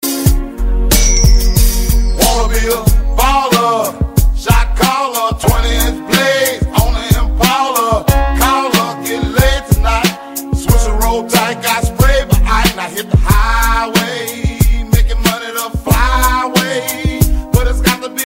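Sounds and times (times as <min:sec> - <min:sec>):
English rap song ringtone: 0:00.9 - 0:18.2.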